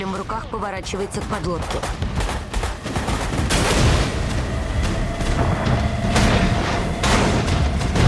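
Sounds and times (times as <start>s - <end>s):
naval guns of the destroyer Greyhound firing on a submarine: 0.0s - 8.0s
speech: 0.2s - 2.3s.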